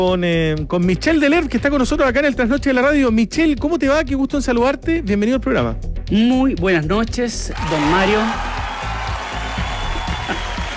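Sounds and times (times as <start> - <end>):
speech: 0.0 - 8.6
applause played as a radio show bumper: 7.5 - 10.7.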